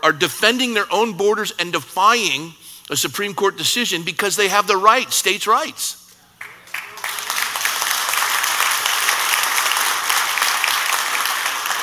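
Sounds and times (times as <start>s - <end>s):
speech: 0.1s - 6.0s
audience clapping: 6.4s - 11.8s.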